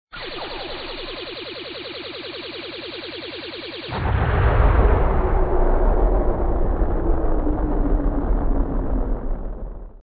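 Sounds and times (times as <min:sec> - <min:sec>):
bomb exploding: 0:03.9 - 0:10.0.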